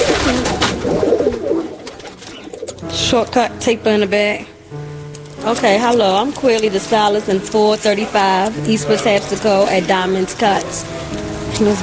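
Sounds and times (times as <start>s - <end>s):
pigeons cooing: 0.0s - 3.0s
steady hiss: 2.5s - 11.8s
speech: 3.1s - 4.5s, 5.4s - 11.8s.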